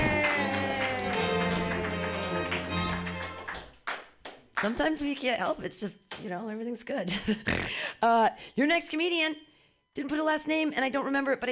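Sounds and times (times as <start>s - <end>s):
audience clapping wildly: 0.0s - 5.0s
speech: 4.6s - 11.4s.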